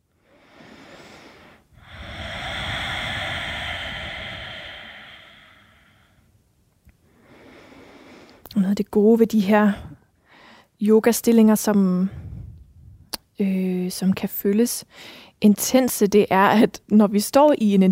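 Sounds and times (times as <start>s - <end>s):
deep slow breathing during a yoga session: 0.1s - 6.3s, 7.1s - 8.4s, 12.1s - 13.1s
speech: 8.6s - 9.9s, 10.8s - 12.2s, 13.4s - 17.9s.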